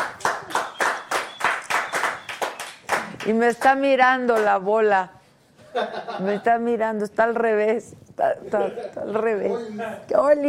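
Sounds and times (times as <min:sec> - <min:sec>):
rhythmic clapping: 0:00.0 - 0:04.6
speech: 0:03.2 - 0:10.4.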